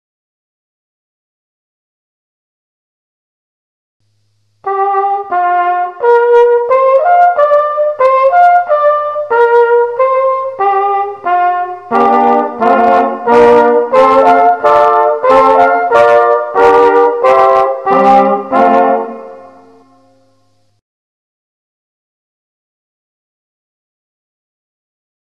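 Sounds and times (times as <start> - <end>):
test music: 4.2 - 20.7.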